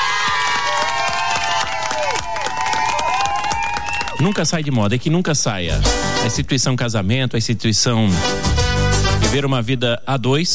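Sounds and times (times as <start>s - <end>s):
audience clapping and cheering: 0.0s - 4.9s
speech: 4.2s - 8.6s, 9.3s - 10.5s.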